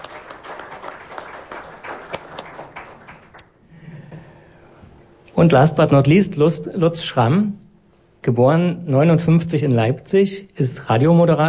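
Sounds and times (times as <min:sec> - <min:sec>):
audience applause: 0:00.0 - 0:03.6
speech: 0:05.4 - 0:07.6, 0:08.2 - 0:11.4.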